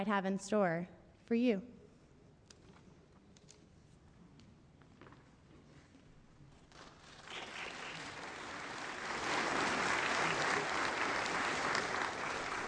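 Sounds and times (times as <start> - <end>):
speech: 0.0 - 1.8
audience applause: 7.1 - 12.6.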